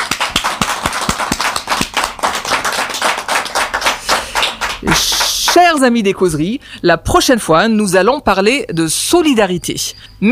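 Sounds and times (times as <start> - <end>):
audience applause: 0.0 - 5.6
speech: 4.8 - 10.2.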